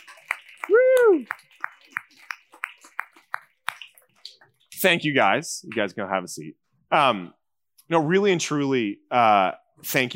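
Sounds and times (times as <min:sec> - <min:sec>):
audience clapping: 0:00.0 - 0:04.6
speech: 0:04.8 - 0:10.1.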